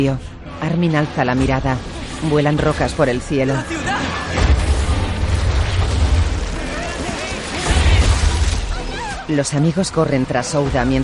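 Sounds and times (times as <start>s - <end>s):
speech: 0.0s - 4.2s, 9.3s - 11.0s
wall blown apart in explosion: 4.3s - 9.0s.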